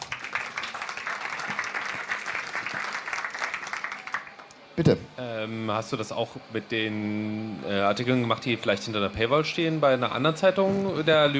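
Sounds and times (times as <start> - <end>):
audience applause: 0.0 - 4.7
speech: 4.8 - 11.3.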